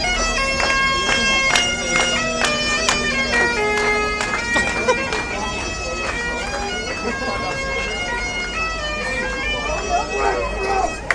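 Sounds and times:
celebratory piper playing outside: 0.0 - 11.1
laughter: 0.9 - 11.1.

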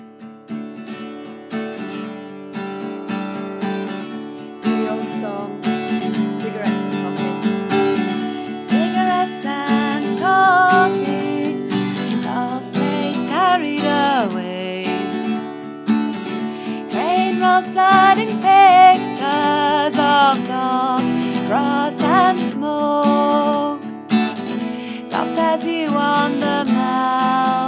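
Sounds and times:
person singing an old song in a bedroom: 4.7 - 8.0, 8.6 - 15.4, 16.4 - 27.6.

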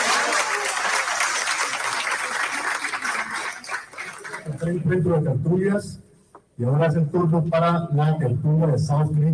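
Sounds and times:
audience applause: 0.0 - 4.5
speech: 4.6 - 9.3.

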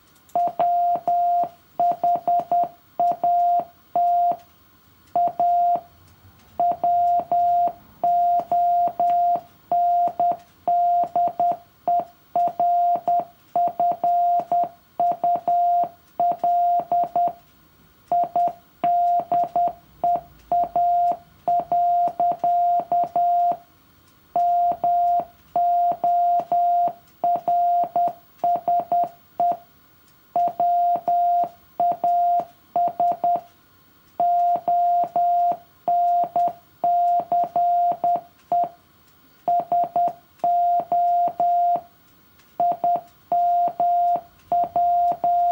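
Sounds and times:
morse code beeps: 0.4 - 4.4, 5.2 - 5.9, 6.6 - 17.4, 18.1 - 23.6, 24.4 - 29.6, 30.4 - 33.4, 34.2 - 38.7, 39.5 - 41.8, 42.6 - 45.5.

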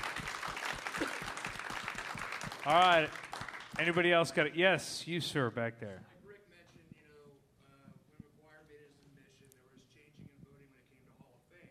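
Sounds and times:
audience applause for a baseball Hall of Famer at a question-and-answer session: 0.0 - 4.4
speech: 2.6 - 6.1.

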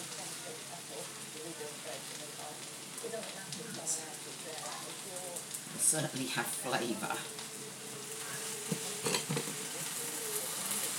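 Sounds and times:
Chinese food with a hoisin-like sauce sizzling in a shallow pan: 0.0 - 10.9
speech: 1.4 - 7.5
stirring clatters against the pan: 8.6 - 9.9.

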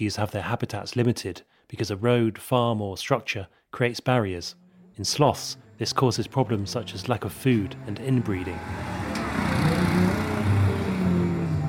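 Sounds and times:
speech: 0.0 - 10.0
cars and ATVs chugging along road: 5.5 - 11.6.

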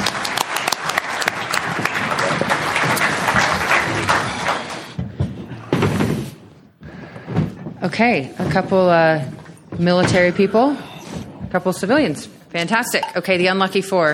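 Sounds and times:
round of applause for panel: 0.0 - 5.0
speech: 7.9 - 10.9, 11.5 - 14.1.

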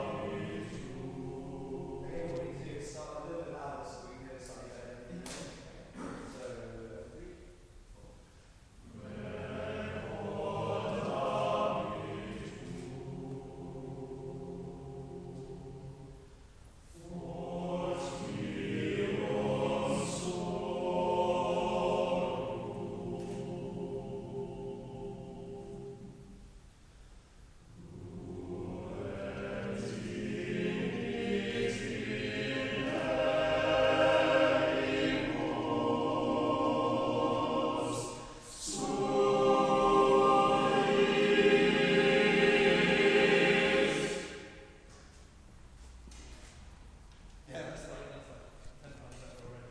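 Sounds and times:
choir singing: 0.0 - 3.6, 8.8 - 16.3, 16.9 - 26.4, 27.7 - 44.8.

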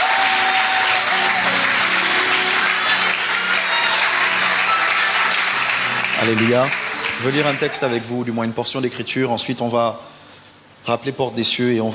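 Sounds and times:
crowd applauding: 0.0 - 8.5
speech: 6.2 - 10.2, 10.8 - 11.9.

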